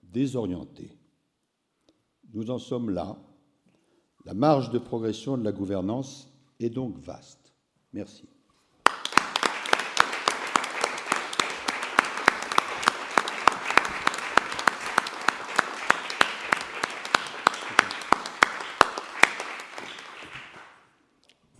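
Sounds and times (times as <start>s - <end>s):
speech: 0.1s - 1.0s, 2.3s - 3.3s, 4.2s - 8.3s
sustained audience applause: 8.8s - 20.9s.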